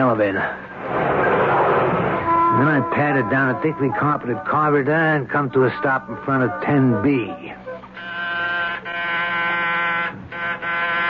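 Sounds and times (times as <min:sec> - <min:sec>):
speech: 0:00.0 - 0:01.3, 0:02.6 - 0:07.6
doorbell buzzer ringing: 0:08.0 - 0:11.0.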